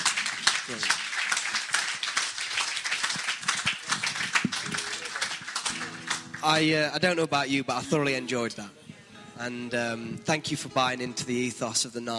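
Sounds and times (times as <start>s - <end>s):
audience applause: 0.0s - 6.7s
speech: 0.7s - 1.0s, 6.4s - 8.8s, 9.4s - 12.1s.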